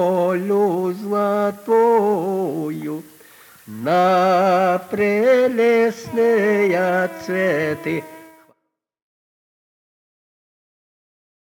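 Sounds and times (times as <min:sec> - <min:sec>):
folk song singing: 0:00.0 - 0:08.5.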